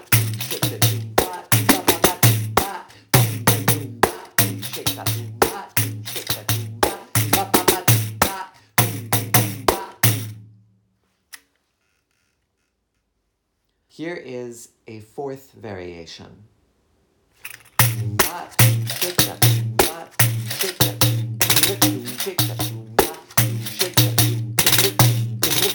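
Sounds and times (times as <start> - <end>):
pandeiro rhythm variations for capoeira music: 0.0 - 10.6, 17.8 - 25.7.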